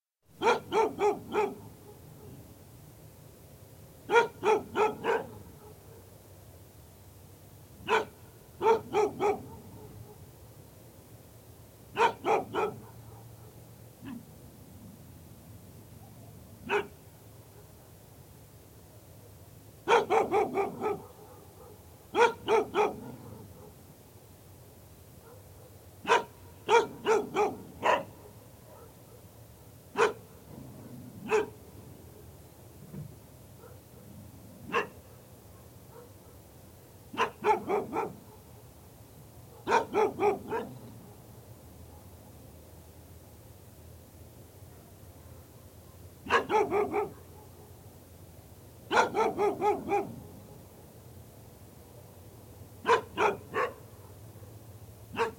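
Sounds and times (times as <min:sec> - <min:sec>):
dog: 0:00.4 - 0:02.4, 0:04.1 - 0:06.1, 0:07.9 - 0:10.3, 0:12.0 - 0:14.2, 0:16.0 - 0:17.0, 0:19.9 - 0:23.8, 0:25.2 - 0:29.3, 0:30.0 - 0:31.6, 0:33.6 - 0:34.1, 0:34.7 - 0:36.4, 0:37.2 - 0:38.5, 0:39.5 - 0:41.2, 0:44.7 - 0:47.8, 0:48.9 - 0:50.6, 0:52.8 - 0:54.2, 0:55.1 - 0:55.3.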